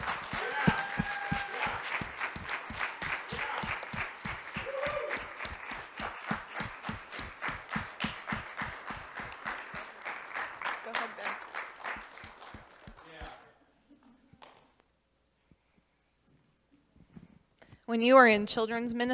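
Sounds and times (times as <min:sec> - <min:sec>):
crowd clapping: 0:00.0 - 0:13.4
speech: 0:17.9 - 0:19.1.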